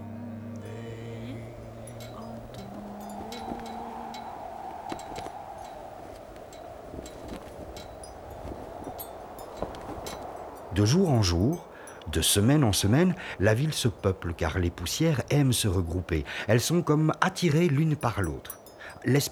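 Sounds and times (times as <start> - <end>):
low droning hum: 0.0 - 7.5
wind blowing through city streets: 0.9 - 16.6
speech: 10.8 - 19.3.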